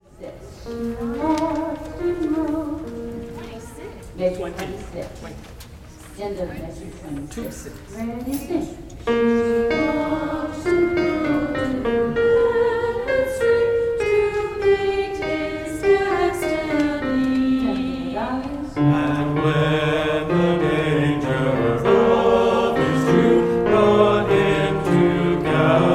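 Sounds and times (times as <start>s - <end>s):
soprano singing: 0.5s - 4.0s, 9.1s - 25.9s.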